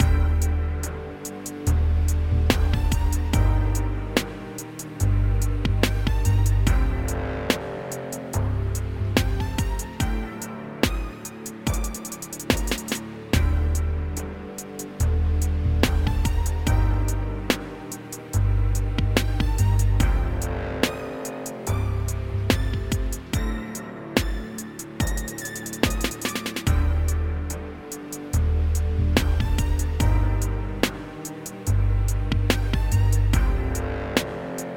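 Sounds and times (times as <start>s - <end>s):
slow trap beat: 0.0s - 34.7s.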